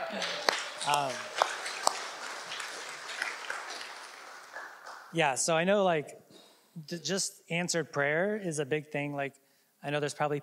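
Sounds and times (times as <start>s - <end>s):
audience clapping: 0.0s - 5.2s
speech: 0.1s - 1.3s, 5.1s - 6.2s, 6.8s - 10.4s.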